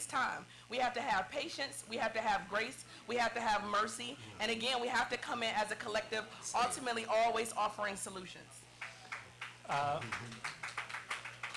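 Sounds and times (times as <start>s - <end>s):
speech: 0.0s - 8.6s, 9.7s - 10.4s
audience applause: 8.8s - 11.5s.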